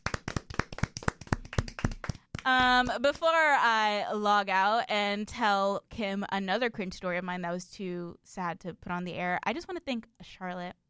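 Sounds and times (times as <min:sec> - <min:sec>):
hand clapping: 0:00.0 - 0:02.9
speech: 0:02.4 - 0:10.8.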